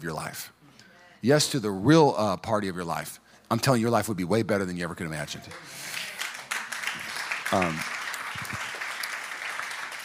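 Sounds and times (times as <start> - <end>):
speech: 0.0 - 0.6, 1.2 - 5.9, 7.5 - 7.9
audience clapping: 5.4 - 10.0.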